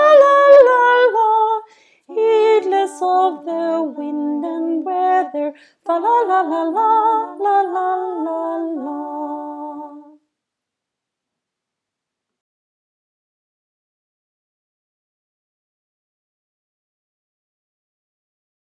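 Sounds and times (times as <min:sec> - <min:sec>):
soprano singing: 0:00.0 - 0:10.2.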